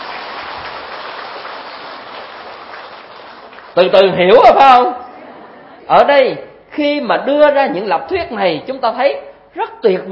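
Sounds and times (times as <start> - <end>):
audience applause: 0.0 - 3.8
speech: 3.8 - 5.0, 5.9 - 10.1.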